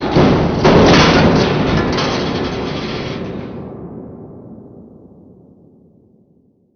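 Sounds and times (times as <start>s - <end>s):
industrial ambience: 0.0s - 4.7s.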